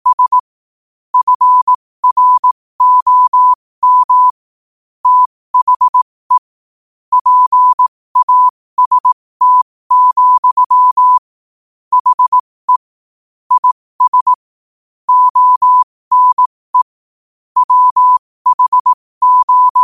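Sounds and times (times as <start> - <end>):
morse code at 5 wpm: 0.0 - 0.4, 1.2 - 4.3, 5.0 - 6.5, 7.1 - 11.3, 11.9 - 12.8, 13.6 - 14.4, 15.1 - 16.9, 17.6 - 19.8.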